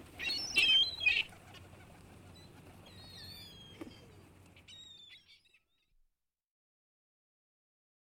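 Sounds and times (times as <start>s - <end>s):
seagulls calling at the sea: 0.0s - 5.9s.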